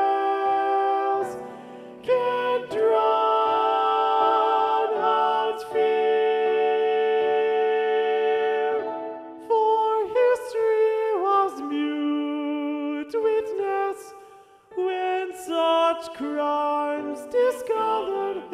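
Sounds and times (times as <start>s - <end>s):
alto voice singing in SATB choir: 0.0s - 18.5s.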